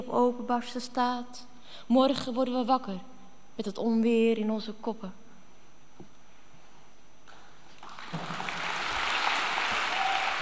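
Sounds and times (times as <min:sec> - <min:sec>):
speech: 0:00.1 - 0:05.2
audience applause after a poem: 0:07.8 - 0:10.4.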